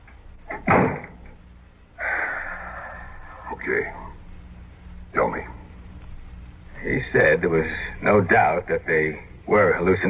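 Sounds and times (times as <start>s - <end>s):
steady rushing hiss: 0.0s - 10.0s
door creaking and thudding shut: 0.5s - 1.3s
speech: 3.6s - 4.0s, 6.8s - 10.0s.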